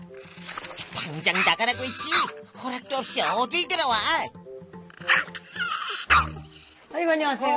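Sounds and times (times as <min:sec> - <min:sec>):
speech: 0:00.5 - 0:04.4, 0:07.0 - 0:07.5
dog barking: 0:05.0 - 0:05.4.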